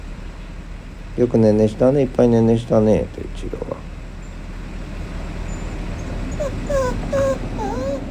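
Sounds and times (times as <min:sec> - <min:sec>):
speech: 0:01.2 - 0:03.9
Hokkaido dog whining: 0:05.6 - 0:08.0.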